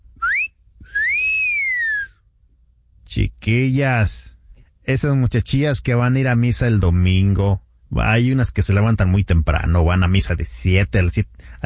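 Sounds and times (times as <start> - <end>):
person whistling: 0.2 - 2.2
speech: 3.1 - 4.3, 4.9 - 11.6.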